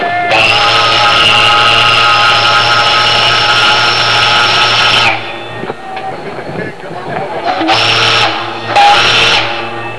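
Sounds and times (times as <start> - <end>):
horn: 0.3 - 5.4, 7.5 - 9.8.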